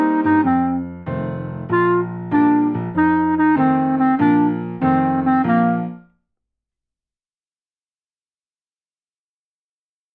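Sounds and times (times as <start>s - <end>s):
jazz clarinet etude: 0.0s - 6.1s.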